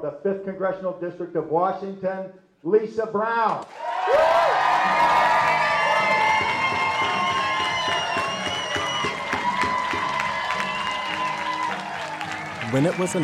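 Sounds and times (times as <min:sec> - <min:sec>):
speech: 0:00.0 - 0:05.2, 0:12.7 - 0:13.2
crowd cheering after election result: 0:03.6 - 0:13.2.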